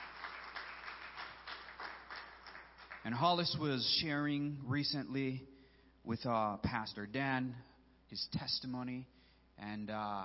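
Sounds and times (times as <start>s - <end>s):
audience applause: 0.0s - 3.2s
speech: 3.0s - 10.2s.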